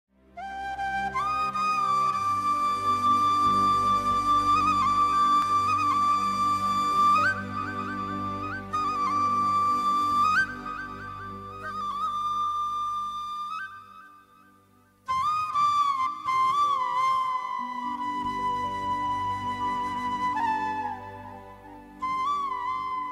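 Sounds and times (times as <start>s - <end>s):
sad background music: 0.2s - 15.2s, 16.2s - 23.1s.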